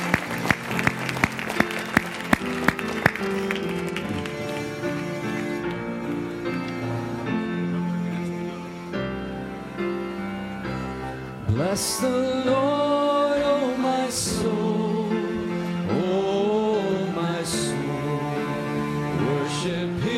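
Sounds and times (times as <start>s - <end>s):
crowd applause: 0.0s - 6.5s
sustained keyboard music: 0.0s - 20.1s
speech: 11.8s - 12.7s.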